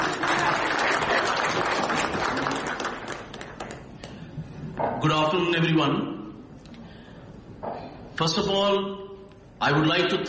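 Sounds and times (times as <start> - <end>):
big round of applause: 0.0 - 4.2
speech: 5.0 - 6.2, 8.2 - 10.2.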